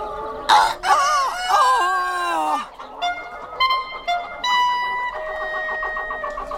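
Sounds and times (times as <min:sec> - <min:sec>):
hens clucking in a farmyard: 0:00.0 - 0:06.5
rooster crowing in a farmyard: 0:00.5 - 0:02.7.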